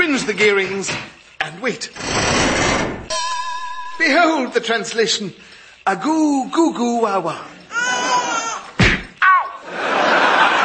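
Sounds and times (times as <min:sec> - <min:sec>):
speech: 0:00.2 - 0:02.6, 0:04.0 - 0:07.6
laughter: 0:07.7 - 0:08.7, 0:09.6 - 0:10.6
punch thwacks: 0:08.8 - 0:09.1.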